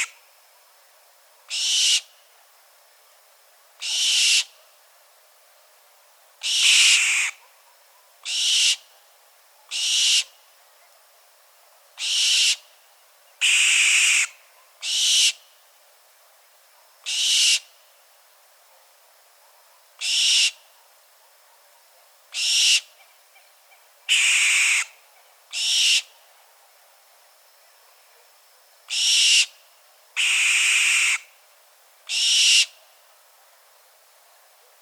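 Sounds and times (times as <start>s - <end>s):
barn owl call: 1.5s - 2.1s, 3.8s - 4.6s, 6.4s - 7.5s, 8.2s - 8.9s, 9.7s - 10.3s, 12.0s - 12.6s, 13.4s - 15.4s, 17.1s - 17.7s, 20.0s - 20.7s, 22.3s - 26.2s, 28.9s - 29.6s, 30.2s - 31.4s, 32.1s - 32.8s.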